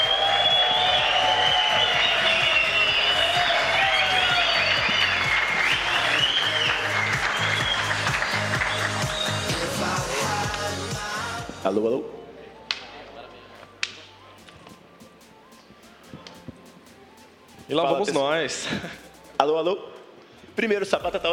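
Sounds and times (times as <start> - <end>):
audience applause: 0.0 - 10.6
speech: 11.7 - 12.2, 17.7 - 19.9, 20.6 - 21.3.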